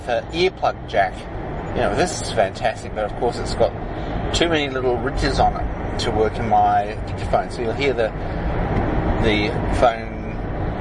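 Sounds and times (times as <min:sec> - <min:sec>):
road and engine rumble inside a moving car: 0:00.0 - 0:10.7
speech: 0:00.1 - 0:08.5, 0:09.2 - 0:10.1.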